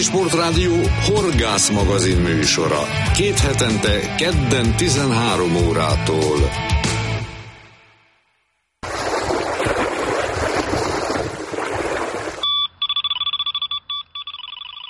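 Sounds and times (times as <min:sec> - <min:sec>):
speech: 0:00.0 - 0:06.7
waves over the water: 0:08.8 - 0:12.4
carp fishing bite alarm at a lakeside beeping: 0:12.4 - 0:14.8.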